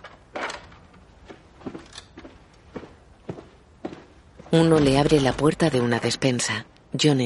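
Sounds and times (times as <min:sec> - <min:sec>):
footsteps walking down a corridor: 0:00.0 - 0:05.7
speech: 0:04.5 - 0:07.2.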